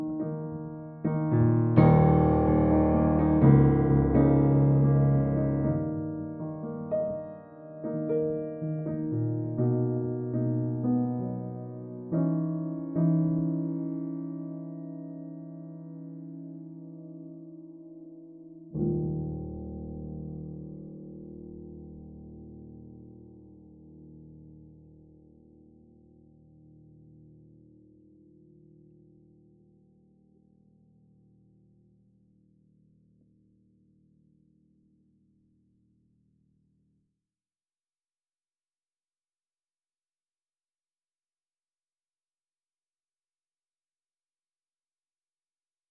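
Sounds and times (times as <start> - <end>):
Fazioli concert grand piano: 0.0 - 30.1.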